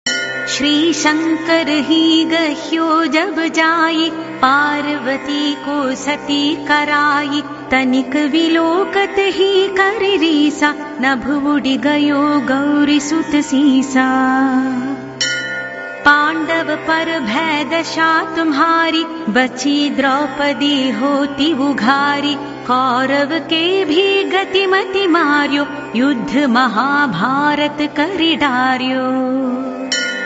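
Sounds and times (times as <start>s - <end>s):
devotional chanting: 0.6s - 15.1s, 16.0s - 30.1s.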